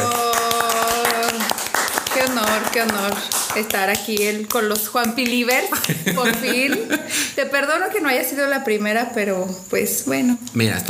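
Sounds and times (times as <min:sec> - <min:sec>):
small group applauding a guest: 0:00.0 - 0:07.0
speech: 0:02.4 - 0:10.8
laughter: 0:05.5 - 0:07.3.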